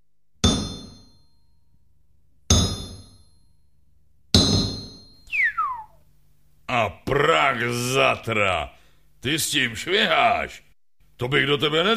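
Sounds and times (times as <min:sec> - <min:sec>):
hammer striking metal: 0:00.4 - 0:01.4, 0:02.5 - 0:03.5, 0:04.3 - 0:05.3
high whistling tone sliding downward: 0:05.2 - 0:06.0
speech: 0:06.8 - 0:11.9.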